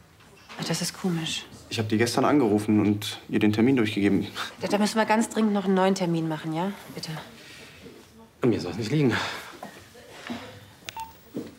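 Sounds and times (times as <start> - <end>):
speech: 0.6 - 7.4, 8.4 - 9.4
telephone keypad tones while dialing: 10.9 - 11.3.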